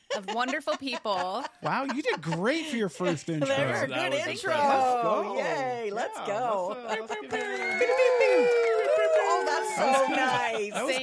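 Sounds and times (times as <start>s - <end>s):
laughter: 0.0s - 11.0s
speech: 0.2s - 8.7s, 9.8s - 11.0s
crowd cheering and whooping: 7.3s - 10.7s.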